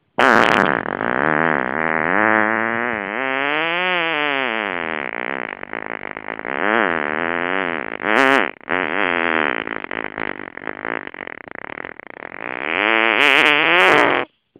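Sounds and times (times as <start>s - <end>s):
fart: 0.0s - 14.3s.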